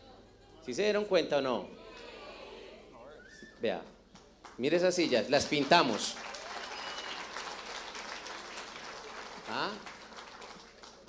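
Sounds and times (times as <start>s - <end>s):
speech: 0.7s - 1.8s, 3.6s - 3.9s, 4.6s - 6.3s, 9.5s - 9.9s
room full of people clapping: 4.2s - 11.0s.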